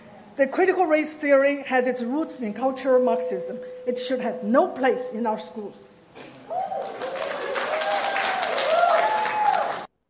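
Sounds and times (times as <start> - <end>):
speech: 0.4 - 5.9
audience applause at a meeting: 6.5 - 9.9.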